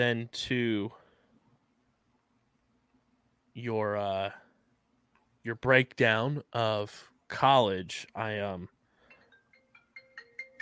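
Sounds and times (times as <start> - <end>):
speech: 0.0 - 1.0, 3.6 - 4.4, 5.4 - 8.8
phone ringing with an incoming call: 9.1 - 10.5.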